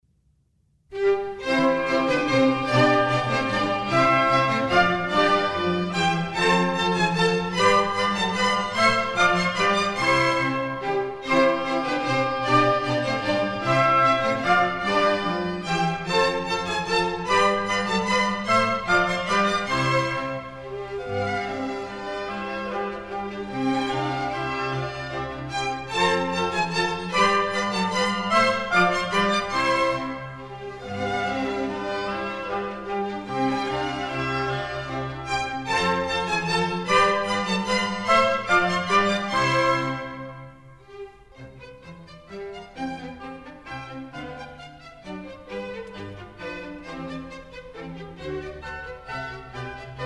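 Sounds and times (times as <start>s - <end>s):
minuet in C major: 0.9s - 50.0s.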